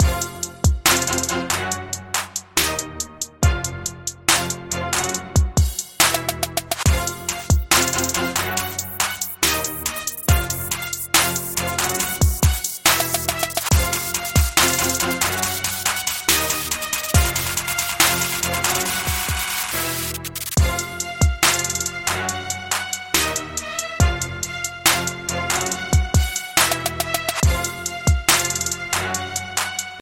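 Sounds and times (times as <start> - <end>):
rap beat: 0.0 - 29.9.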